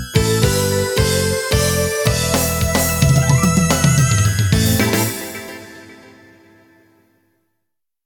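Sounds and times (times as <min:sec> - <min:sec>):
guitar backing track: 0:00.2 - 0:06.3.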